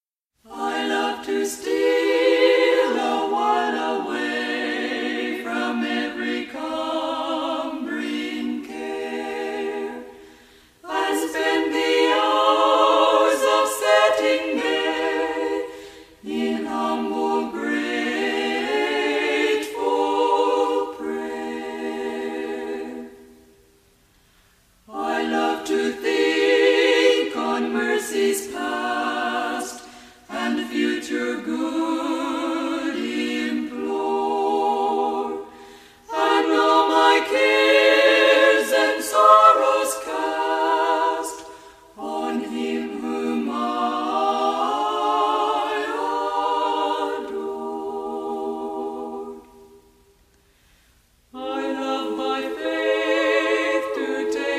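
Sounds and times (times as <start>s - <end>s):
choir singing: 0.4s - 23.8s, 24.8s - 50.3s, 51.3s - 54.5s.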